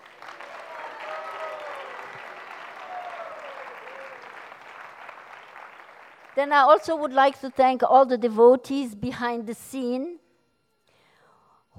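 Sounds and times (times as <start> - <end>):
audience applause: 0.0 - 7.0
speech: 6.4 - 10.2.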